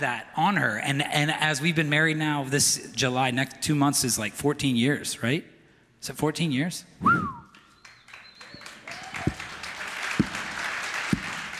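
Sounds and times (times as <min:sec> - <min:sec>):
speech: 0:00.0 - 0:07.4
applause-like noise: 0:07.5 - 0:11.5
loud sharp hand claps: 0:07.5 - 0:11.5.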